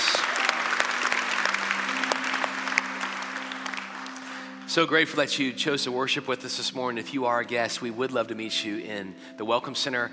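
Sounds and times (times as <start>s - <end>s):
audience applauding: 0.0s - 5.0s
speech: 4.7s - 10.1s.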